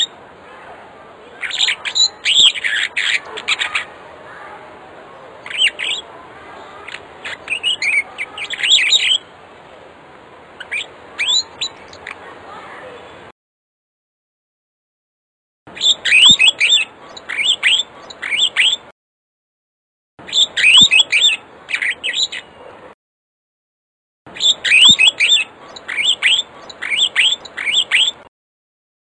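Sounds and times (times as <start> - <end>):
African starling singing with whistled notes: 1.4 - 3.9, 5.5 - 6.0, 7.2 - 9.2, 10.6 - 12.1, 15.7 - 18.9, 20.2 - 22.5, 24.3 - 28.3.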